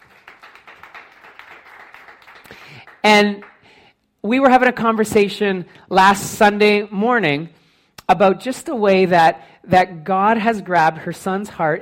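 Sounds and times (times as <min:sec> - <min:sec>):
audience applauding a woman welcomed to the stage: 0:00.0 - 0:03.7
speech: 0:03.0 - 0:03.5, 0:04.2 - 0:11.8.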